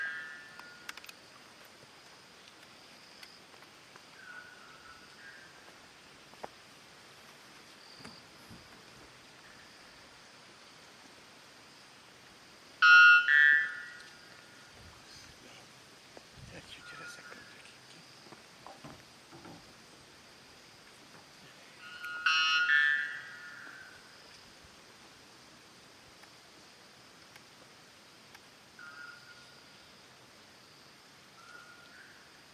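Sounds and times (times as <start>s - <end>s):
white bellbird: 0.0s - 0.9s, 12.8s - 14.7s, 16.7s - 17.7s, 21.8s - 24.1s, 28.8s - 29.6s.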